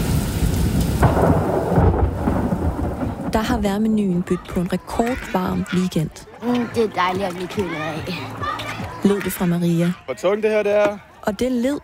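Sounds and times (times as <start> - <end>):
thunderclap during a rainstorm: 0.0 - 4.8
speech: 3.4 - 11.8.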